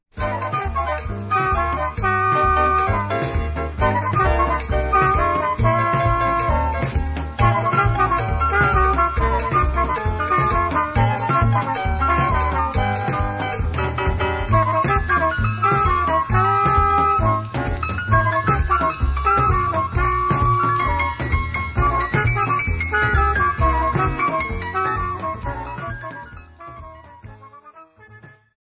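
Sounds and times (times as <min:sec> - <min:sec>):
instrumental merengue: 0:00.1 - 0:27.8.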